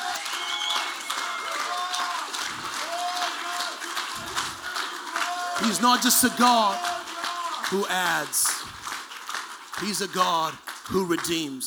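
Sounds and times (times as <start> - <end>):
audience shouting: 0.0 - 8.7
audience clapping: 0.0 - 11.6
speech: 5.6 - 6.9, 7.7 - 8.5, 9.8 - 11.6.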